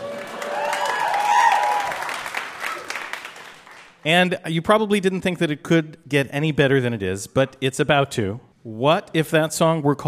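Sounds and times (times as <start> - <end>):
vocal whoops: 0.0 - 3.0
audience applause: 0.0 - 4.0
speech: 4.0 - 10.0.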